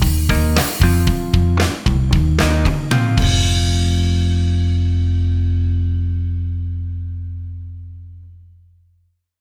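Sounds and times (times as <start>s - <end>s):
slide guitar backing: 0.0s - 6.8s.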